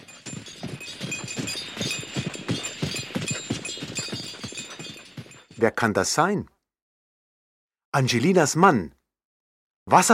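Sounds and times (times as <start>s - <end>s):
horse hooves clip-clopping on a hard street: 0.0s - 5.6s
horse-drawn carriage rolling along the street: 0.0s - 5.6s
speech: 5.6s - 6.5s, 7.9s - 9.0s, 9.9s - 10.1s.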